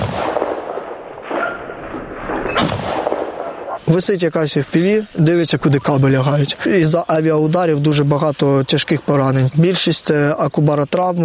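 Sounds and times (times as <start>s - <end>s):
gunfire at a hovering drone: 0.0s - 3.8s
speech: 3.9s - 11.2s.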